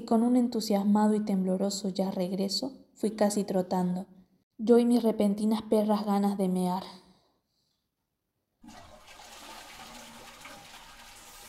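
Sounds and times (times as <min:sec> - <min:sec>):
speech: 0:00.1 - 0:07.0
toilet flush by pulling chain: 0:08.6 - 0:11.4.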